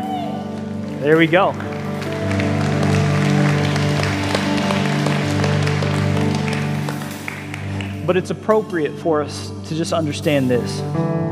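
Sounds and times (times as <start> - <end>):
church audience cheering and clapping: 0.0 - 8.1
speech: 1.0 - 2.5, 8.1 - 11.2.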